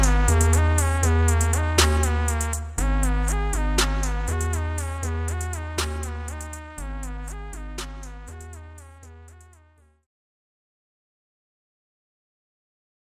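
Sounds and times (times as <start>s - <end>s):
instrumental TikTok remix: 0.0s - 9.9s.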